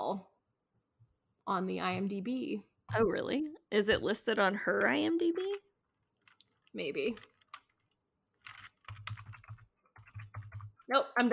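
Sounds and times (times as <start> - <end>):
speech: 0.1 - 0.3, 1.5 - 5.6, 6.8 - 7.3, 10.9 - 11.3
typing on a computer keyboard: 8.4 - 10.8.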